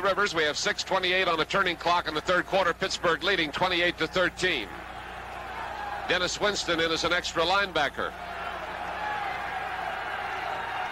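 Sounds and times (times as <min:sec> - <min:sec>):
speech: 0:00.0 - 0:04.8, 0:06.1 - 0:08.3
football crowd at a snowy Three Rivers Stadium cheering for the home defense: 0:00.0 - 0:10.9.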